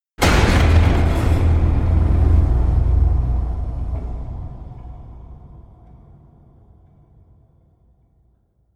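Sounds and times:
evil slam impacts: 0.2s - 6.3s.

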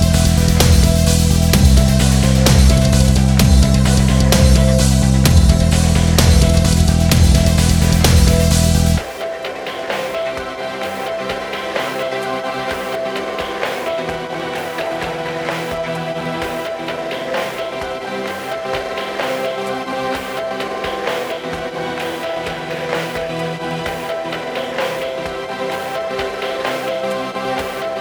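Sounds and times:
remixed music: 0.0s - 27.9s.

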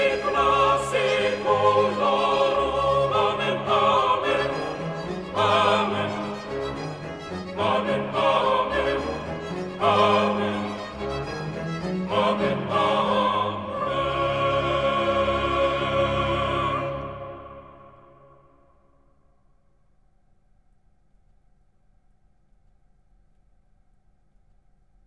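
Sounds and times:
choir singing: 0.0s - 18.6s.

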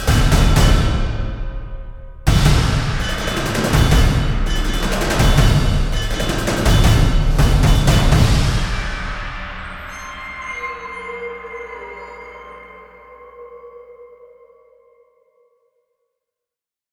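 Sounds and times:
drums: 0.0s - 10.6s.

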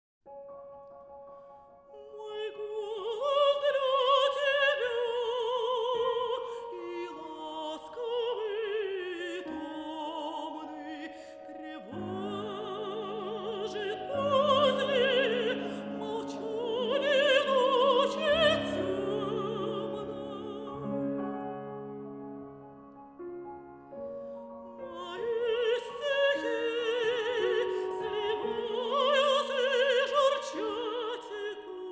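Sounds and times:
piano: 0.2s - 31.9s
person singing songs: 2.0s - 21.4s, 24.8s - 31.9s.

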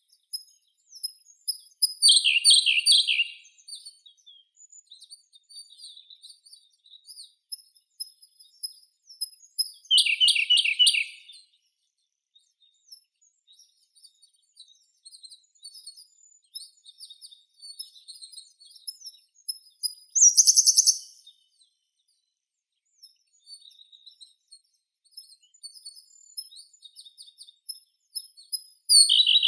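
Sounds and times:
Siberian blue robin Luscinia cyane singing: 0.4s - 3.5s, 9.8s - 11.4s, 20.2s - 21.4s, 28.9s - 29.4s.

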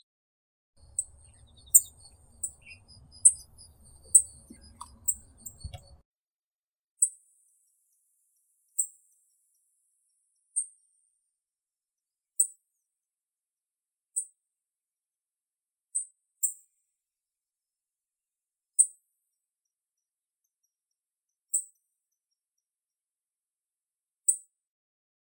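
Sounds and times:
yellow-browed bunting Emberiza chrysophrys calling: 0.8s - 5.8s.

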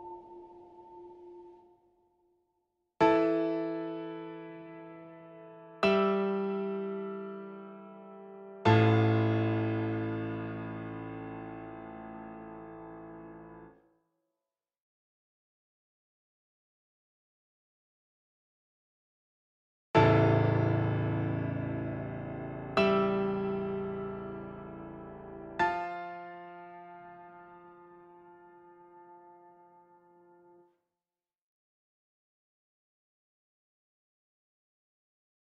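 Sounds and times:
piano: 0.0s - 1.7s, 3.0s - 13.8s, 20.0s - 30.7s.

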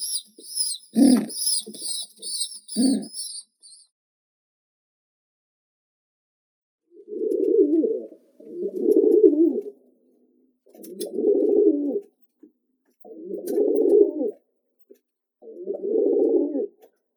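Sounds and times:
grey rock pigeon Columba livia: 0.0s - 3.9s, 6.9s - 9.8s, 10.7s - 12.2s, 13.0s - 17.0s.

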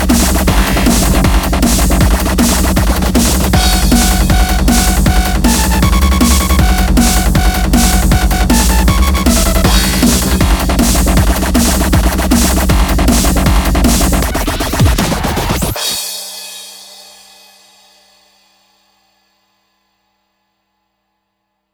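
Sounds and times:
mainstream dubstep glitch hop bass: 0.0s - 15.8s.

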